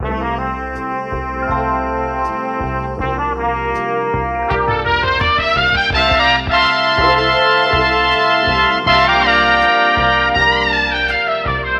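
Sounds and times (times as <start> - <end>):
phonk horn loops: 0.0 - 11.7.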